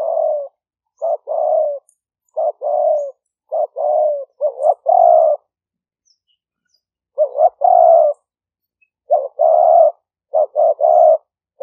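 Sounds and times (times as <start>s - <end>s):
spotted dove cooing softly: 0.0s - 5.7s, 7.0s - 11.6s.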